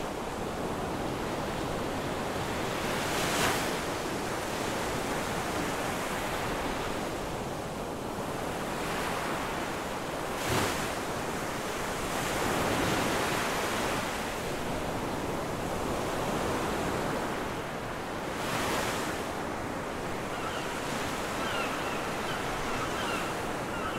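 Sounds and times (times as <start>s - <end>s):
ocean waves on the beach: 0.0s - 23.9s
seagulls calling on the beach: 20.3s - 23.9s.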